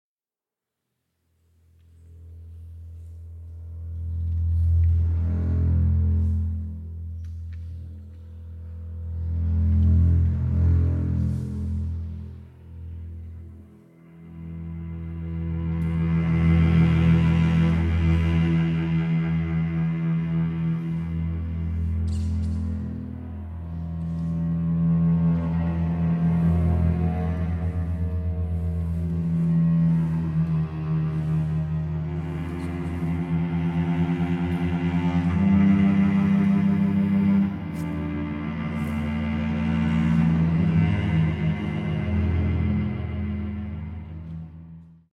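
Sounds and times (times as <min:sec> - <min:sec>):
cello concerto played live: 0:01.8 - 0:45.1.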